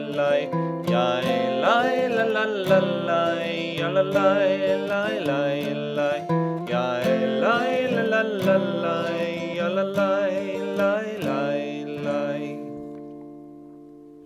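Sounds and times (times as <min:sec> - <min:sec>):
low voice singing a Hebrew prayer: 0:00.0 - 0:12.8.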